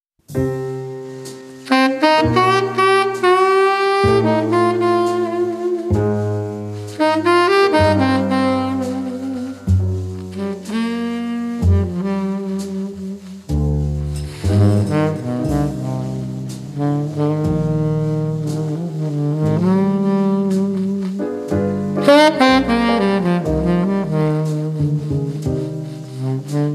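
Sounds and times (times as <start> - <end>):
four tenor saxophones playing modern jazz: 0.7 - 26.7.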